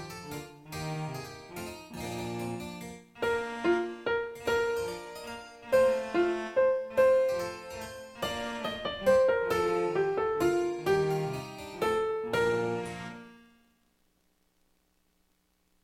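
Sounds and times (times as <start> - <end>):
piano: 0.0 - 13.6
clarinet solo: 3.2 - 13.4.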